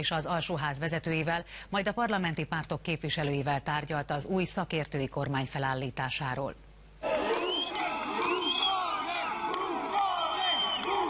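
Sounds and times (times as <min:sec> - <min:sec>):
speech: 0:00.0 - 0:06.6
crowd shouting insults at departing politician: 0:07.0 - 0:11.0
sharp whistles: 0:07.3 - 0:09.3, 0:10.0 - 0:11.0.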